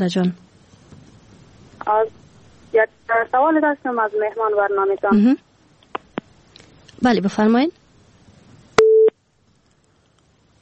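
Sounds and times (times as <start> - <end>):
speech: 0.0 - 0.5, 1.8 - 5.5, 7.0 - 7.8
telephone busy tone after a phone-in call drops: 8.8 - 9.1.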